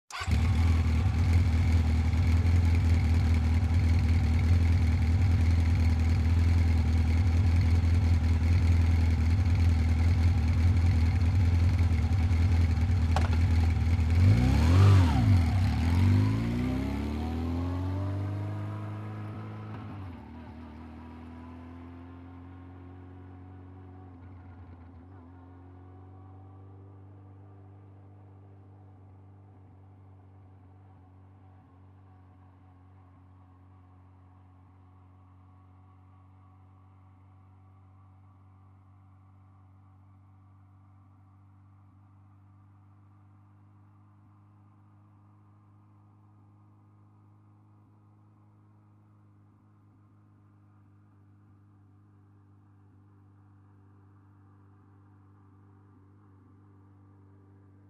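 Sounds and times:
motorcycle starting, idling and driving away: 0:00.1 - 0:26.8.

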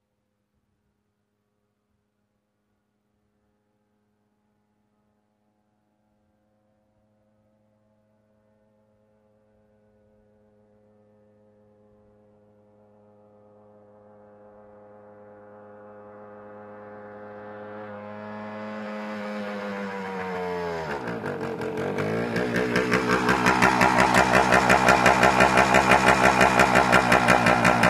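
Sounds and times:
motorcycle approaching and turning off: 0:13.5 - 0:27.8.

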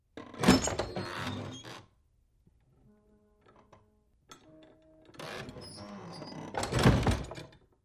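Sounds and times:
wooden door opening and closing with creak: 0:00.2 - 0:01.9, 0:04.7 - 0:07.6.

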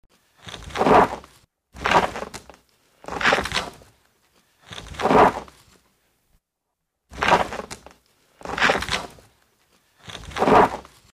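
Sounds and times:
wooden object dragged across the floor: 0:00.2 - 0:03.9, 0:04.6 - 0:05.8, 0:07.1 - 0:09.3, 0:10.0 - 0:11.1.

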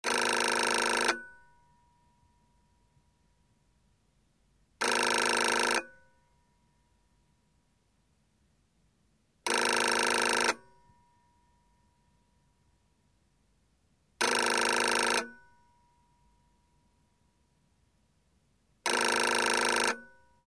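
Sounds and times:
phone ringing: 0:00.0 - 0:01.4, 0:04.8 - 0:06.0, 0:09.5 - 0:10.7, 0:14.2 - 0:15.4, 0:18.9 - 0:20.2.

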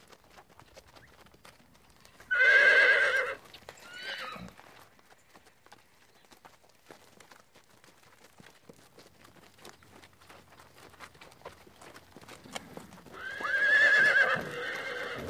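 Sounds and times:
horse whinnying: 0:02.3 - 0:04.6, 0:13.1 - 0:15.2.

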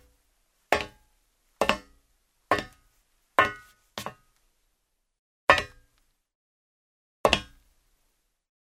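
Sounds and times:
footsteps in shoes on a metal floor: 0:00.7 - 0:01.0, 0:02.5 - 0:04.3.

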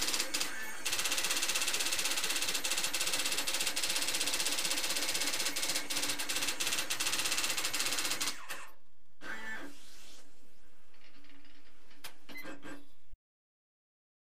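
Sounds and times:
matrix printer: 0:00.0 - 0:09.8, 0:12.1 - 0:12.9.

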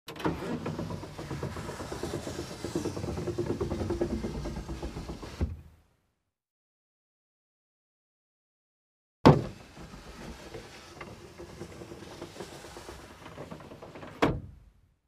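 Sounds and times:
car glass window lowered and raised manually: 0:00.1 - 0:05.8, 0:09.3 - 0:14.6.

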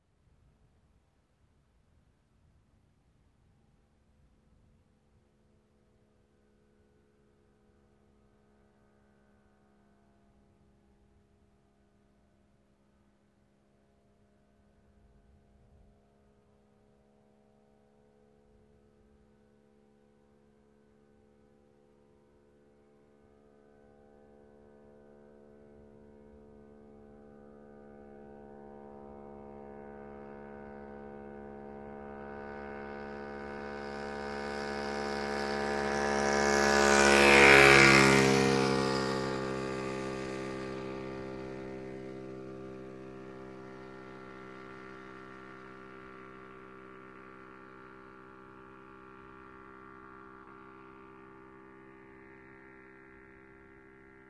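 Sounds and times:
motorcycle passing by: 0:25.8 - 0:54.2.

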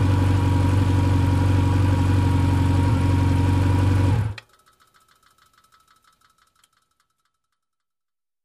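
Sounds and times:
motorcycle approaching and turning off: 0:00.0 - 0:04.4.

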